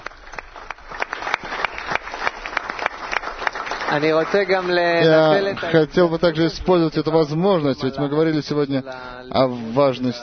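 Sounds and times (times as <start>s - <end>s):
audience applauding at a Kabbalah centre gathering: 0.0s - 6.0s
speech: 3.9s - 10.2s.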